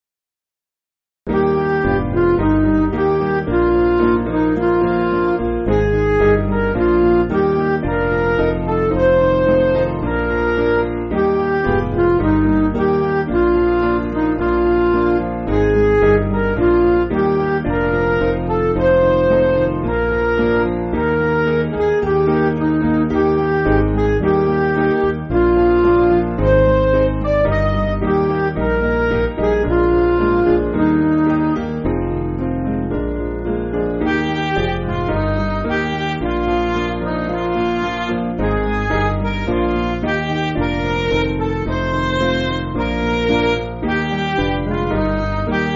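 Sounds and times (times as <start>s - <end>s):
MIDI backing music: 1.3s - 45.7s.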